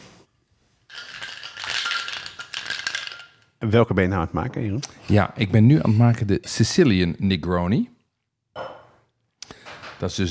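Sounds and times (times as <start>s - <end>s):
cocktail shaker shaken hard, ice rattling: 0.9s - 3.5s
speech: 3.6s - 8.0s, 10.0s - 10.2s.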